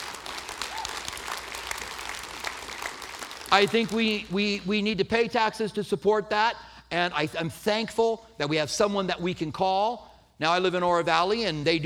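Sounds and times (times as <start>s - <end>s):
audience applause: 0.0s - 4.2s
speech: 3.5s - 11.8s.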